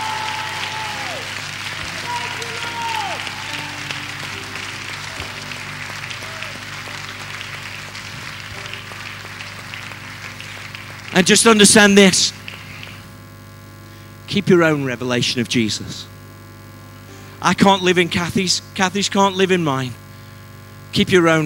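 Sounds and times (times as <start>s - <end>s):
audience hand clapping: 0.0s - 13.2s
speech: 11.2s - 12.4s, 14.3s - 16.1s, 17.4s - 20.0s, 20.9s - 21.4s.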